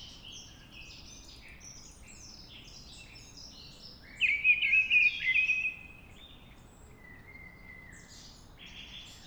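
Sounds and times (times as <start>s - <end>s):
Mistle Thrush song: 4.2s - 5.8s.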